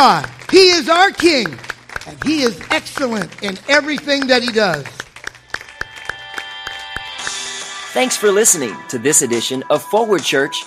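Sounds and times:
speech: 0.0 - 5.0, 8.0 - 10.6
audience applause: 0.0 - 7.7.

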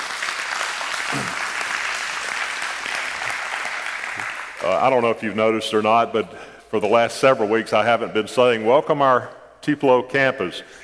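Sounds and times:
audience praise clapping: 0.0 - 5.1
speech: 4.7 - 10.8.

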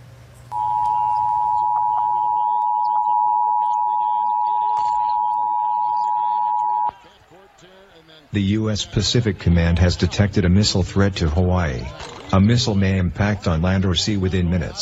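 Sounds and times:
TV emergency alert tone: 0.5 - 6.9
speech: 8.4 - 14.8.

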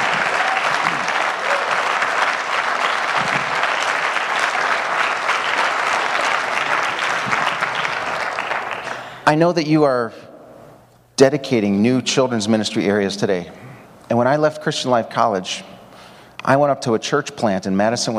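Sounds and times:
audience applause: 0.0 - 9.2
speech: 9.3 - 10.2, 11.2 - 15.7, 16.4 - 18.1.

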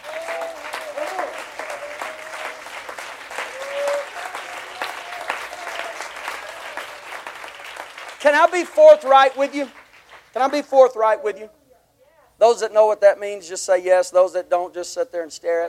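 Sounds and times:
audience clapping hands: 0.0 - 11.0
speech: 8.2 - 9.8, 10.4 - 11.6, 12.4 - 15.6.

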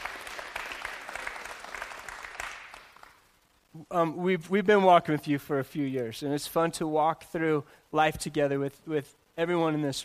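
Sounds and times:
audience applause: 0.0 - 3.2
speech: 3.8 - 10.0.

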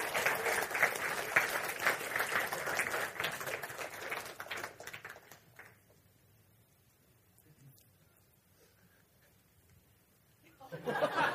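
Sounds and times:
audience applause: 0.0 - 5.8
laughter: 10.6 - 11.3.

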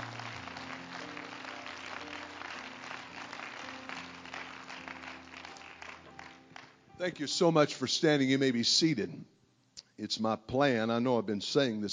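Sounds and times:
audience clapping: 0.0 - 6.8
speech: 7.0 - 9.4, 10.0 - 11.9.

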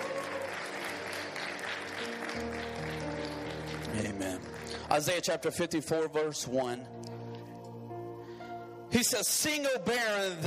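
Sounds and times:
audience clapping hands: 0.0 - 5.4
speech: 4.0 - 7.0, 8.9 - 10.4.

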